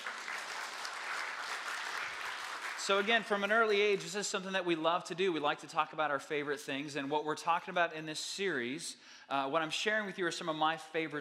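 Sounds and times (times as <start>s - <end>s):
audience applause: 0.0s - 3.3s
speech: 2.9s - 11.1s.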